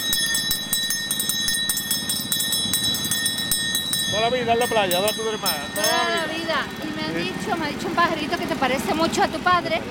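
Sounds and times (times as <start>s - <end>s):
ice cream vendor's handbell ringing: 0.0s - 7.5s
speech: 4.2s - 9.9s.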